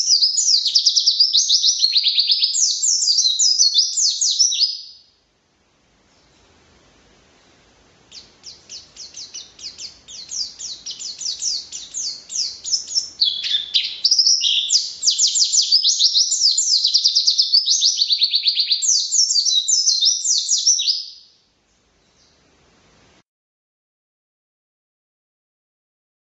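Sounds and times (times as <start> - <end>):
white-eye singing: 0.0 - 5.2, 8.0 - 21.2.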